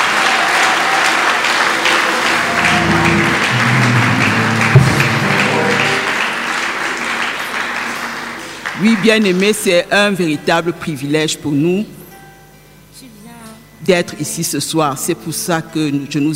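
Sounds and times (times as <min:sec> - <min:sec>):
congregation clapping during a church worship service: 0:00.0 - 0:09.8
speech: 0:08.8 - 0:12.0, 0:13.8 - 0:16.3.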